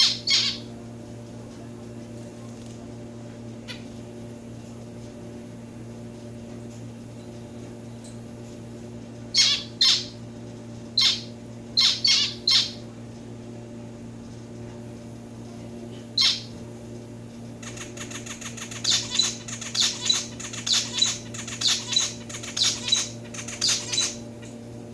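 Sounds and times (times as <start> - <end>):
domestic society finch calls: 0.0 - 0.6, 9.3 - 10.2, 11.0 - 12.8, 16.2 - 16.5, 17.6 - 24.6.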